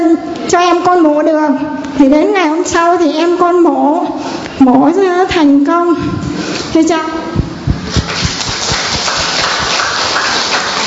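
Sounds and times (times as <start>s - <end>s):
speech: 0.2s - 7.2s
audience clapping hands: 7.9s - 10.8s.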